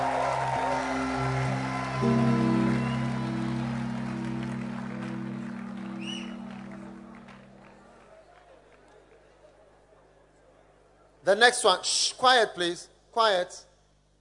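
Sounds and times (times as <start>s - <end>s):
sustained keyboard chords: 0.0s - 8.2s
audience clapping: 0.0s - 9.6s
speech: 2.0s - 2.3s, 11.3s - 13.7s.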